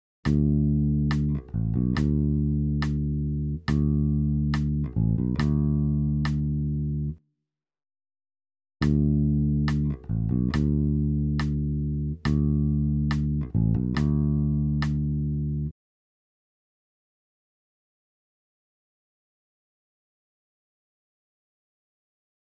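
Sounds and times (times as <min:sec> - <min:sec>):
bass pattern: 0:00.3 - 0:07.2, 0:08.8 - 0:15.7.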